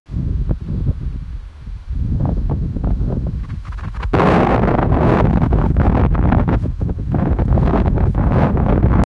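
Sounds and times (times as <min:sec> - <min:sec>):
wind blowing: 0:00.1 - 0:09.1.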